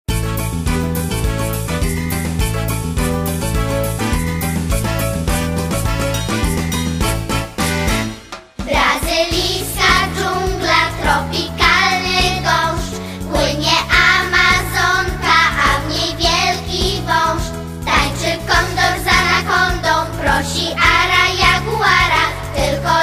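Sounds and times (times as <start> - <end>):
preschool samba music: 0.1 - 23.0.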